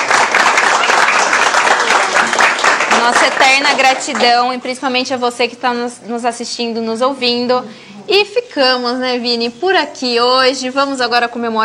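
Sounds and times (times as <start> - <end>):
applause: 0.0 - 4.4
speech: 3.0 - 11.6.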